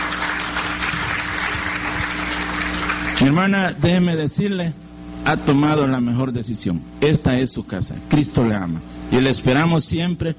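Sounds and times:
audience applauding: 0:00.0 - 0:03.4
speech: 0:03.2 - 0:10.3.

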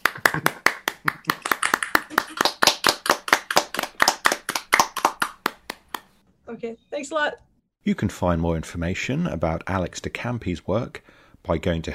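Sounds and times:
audience applause over video call: 0:00.0 - 0:06.0
speech: 0:06.6 - 0:11.9.

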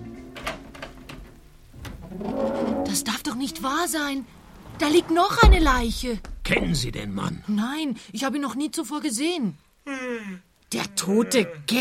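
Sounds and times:
cabinet door being opened: 0:00.2 - 0:02.8
speech: 0:02.2 - 0:11.8.

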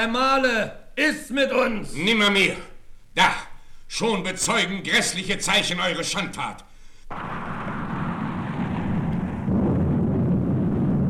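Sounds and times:
speech: 0:00.0 - 0:07.4
thunder rumbling: 0:07.1 - 0:11.0.

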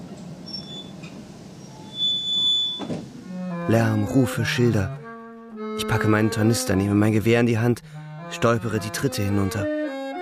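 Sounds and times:
train brake squeal: 0:00.0 - 0:03.3
train coming into a town rumbling: 0:00.0 - 0:03.6
speech: 0:03.7 - 0:05.0, 0:05.8 - 0:09.8.

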